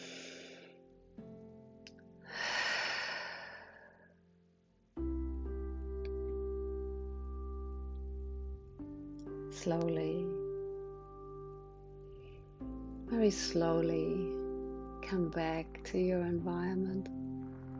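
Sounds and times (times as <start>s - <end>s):
deep breath during a guided breathing-space exercise: 0.0s - 0.8s, 2.2s - 4.2s
low sustained tone: 5.0s - 17.7s
speech: 9.6s - 10.4s, 13.2s - 14.4s, 15.1s - 17.2s.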